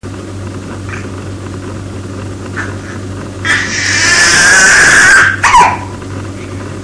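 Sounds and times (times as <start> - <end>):
baby squeaking: 3.5 - 5.9.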